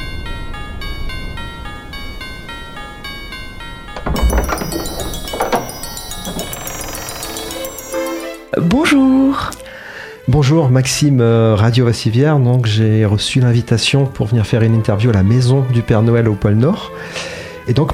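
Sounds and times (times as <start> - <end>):
doorbell ringing at a front door: 0.0 - 8.3
speech: 8.7 - 9.6, 10.3 - 17.9.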